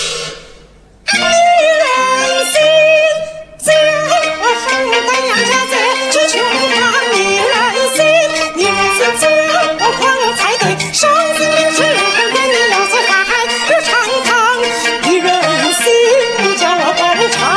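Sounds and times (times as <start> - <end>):
Beijing opera: 1.1 - 17.5.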